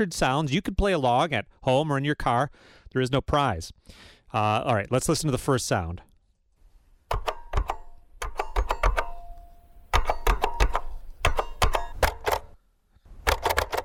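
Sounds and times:
speech: 0:00.0 - 0:06.1
push-button telephone keys being pressed: 0:07.1 - 0:12.6, 0:13.2 - 0:13.8.

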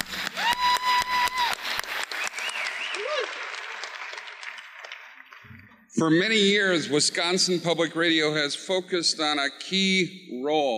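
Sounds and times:
audience applause: 0:00.0 - 0:05.8
speech: 0:06.0 - 0:10.7.

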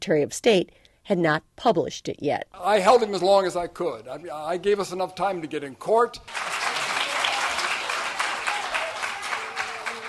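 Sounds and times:
speech: 0:00.0 - 0:06.6
audience applause: 0:06.3 - 0:10.0.

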